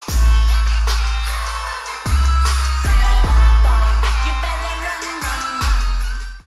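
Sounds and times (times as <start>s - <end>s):
8D bass-boosted concert music effect: 0.0s - 6.4s.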